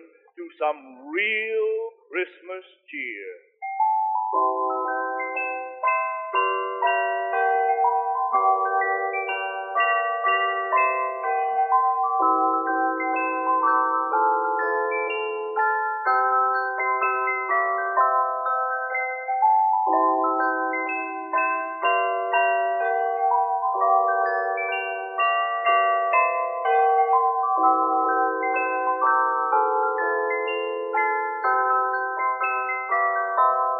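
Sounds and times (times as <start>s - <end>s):
cheerful melody on chimes: 0.0s - 2.3s, 3.0s - 33.7s
speech: 0.6s - 3.5s, 4.3s - 4.7s.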